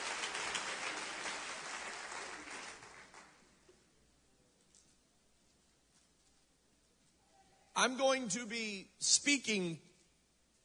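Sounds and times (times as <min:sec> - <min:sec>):
audience clapping hands: 0:00.0 - 0:03.6
speech: 0:07.8 - 0:09.9.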